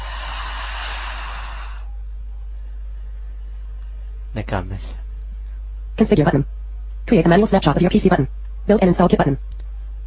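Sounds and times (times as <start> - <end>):
deep breath in: 0.0 - 1.9
speech: 4.4 - 5.0, 6.0 - 9.6.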